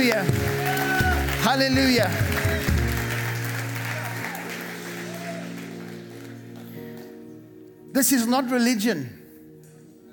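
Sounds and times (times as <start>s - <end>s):
speech: 0.0s - 0.6s, 1.4s - 2.8s, 7.9s - 9.2s
audience clapping: 0.0s - 7.3s.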